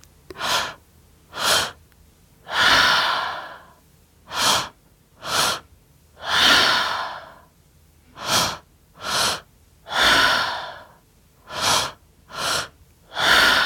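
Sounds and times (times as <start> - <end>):
rhythmic inhales and exhales in a guided breathing exercise: 2.5 - 7.5, 8.2 - 13.6.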